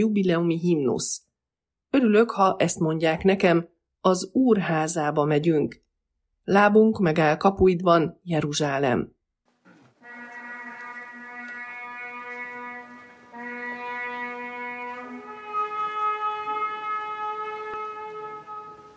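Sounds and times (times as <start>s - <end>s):
speech: 0.0s - 1.3s, 1.9s - 5.8s, 6.4s - 9.2s
ceremonial horn blowing: 9.9s - 18.9s.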